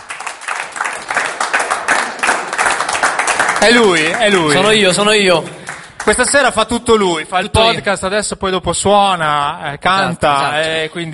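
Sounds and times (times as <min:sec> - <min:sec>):
audience applause welcoming guest on stage: 0:00.0 - 0:06.7
speech: 0:03.6 - 0:11.1.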